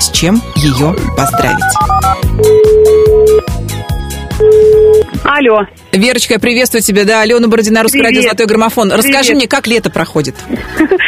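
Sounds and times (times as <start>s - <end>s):
loud rhythmic music with a pounding beat: 0.0s - 5.3s
speech: 0.2s - 2.6s, 5.3s - 11.0s
phone ringback tone beeps: 1.2s - 3.5s, 4.4s - 5.1s.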